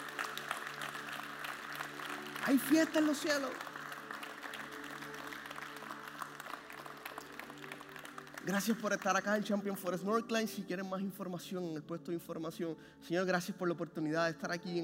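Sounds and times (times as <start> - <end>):
audience applauding: 0.0 - 9.6
speech: 2.4 - 3.7, 8.4 - 14.8.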